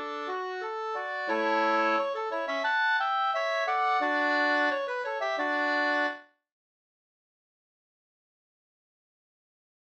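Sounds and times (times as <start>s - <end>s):
folk walking tune: 0.0s - 6.2s.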